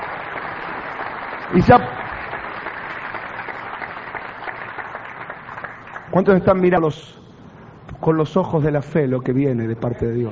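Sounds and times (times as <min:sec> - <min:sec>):
audience applause: 0:00.0 - 0:06.2
speech: 0:01.5 - 0:02.0, 0:06.2 - 0:07.2, 0:08.0 - 0:10.2.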